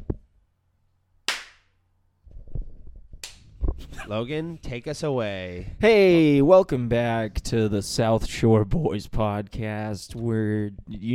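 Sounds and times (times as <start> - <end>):
single hand clap: 1.3 - 1.7, 3.2 - 3.4
speech: 4.0 - 11.1.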